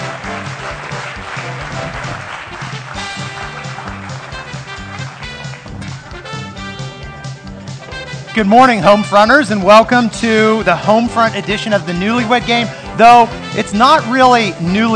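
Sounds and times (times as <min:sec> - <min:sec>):
audience applause: 0:00.0 - 0:06.6
speech: 0:08.4 - 0:14.9.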